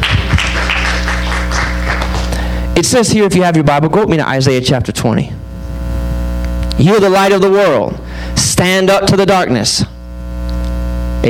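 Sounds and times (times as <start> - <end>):
audience clapping: 0.0 - 2.6
low electrical hum: 0.0 - 11.2
speech: 2.8 - 5.4, 6.8 - 8.0, 8.6 - 9.9.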